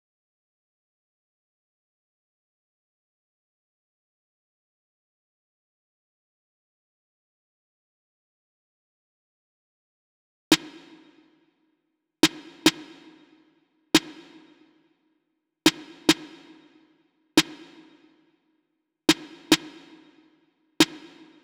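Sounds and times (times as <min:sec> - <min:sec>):
snare drum: 0:10.5 - 0:11.4, 0:12.2 - 0:14.8, 0:15.7 - 0:18.2, 0:19.1 - 0:21.4.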